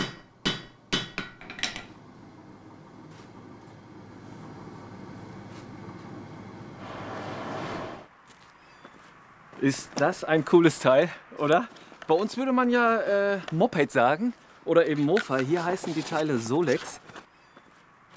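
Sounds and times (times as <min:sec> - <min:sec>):
blacksmith's hammer striking metal in a traditional forge: 0:00.0 - 0:01.9
speech: 0:09.6 - 0:17.0.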